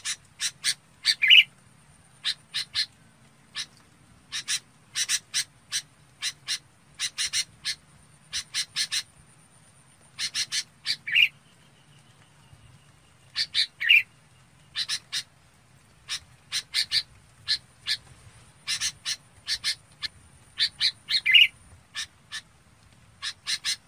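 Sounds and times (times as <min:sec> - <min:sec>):
red-whiskered bulbul calls: 0:00.0 - 0:01.5, 0:02.2 - 0:02.9, 0:03.5 - 0:09.1, 0:10.2 - 0:11.4, 0:13.3 - 0:14.1, 0:14.7 - 0:15.3, 0:16.1 - 0:18.0, 0:18.6 - 0:22.5, 0:23.2 - 0:23.8.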